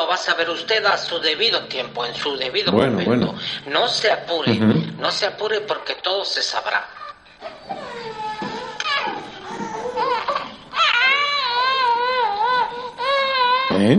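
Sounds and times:
speech: 0.1 - 7.0, 13.8 - 13.9
child crying: 7.7 - 13.8.

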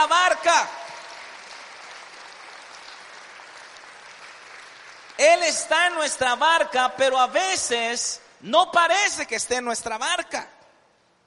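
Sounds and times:
speech: 0.0 - 0.8, 5.2 - 10.6
loud applause: 0.0 - 6.1.

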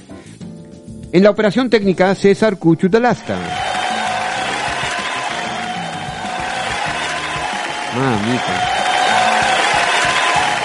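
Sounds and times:
speech: 1.1 - 3.7, 8.0 - 8.6
studio audience applause: 3.2 - 10.6.

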